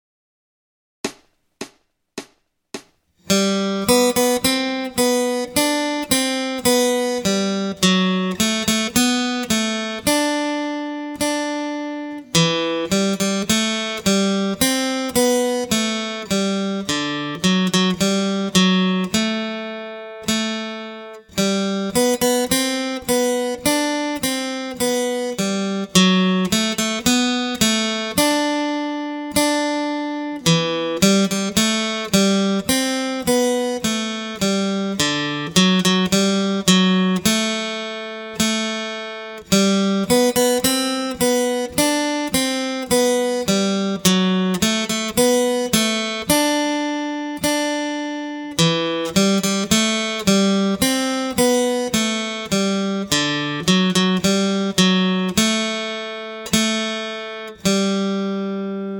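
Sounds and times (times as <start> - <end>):
acoustic guitar accompaniment: 1.0 - 58.9.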